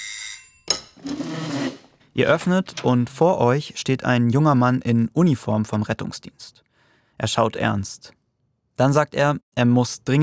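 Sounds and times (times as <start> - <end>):
doorbell ringing: 0.0 - 1.0
speech: 2.2 - 6.6, 7.2 - 8.2, 8.8 - 10.2.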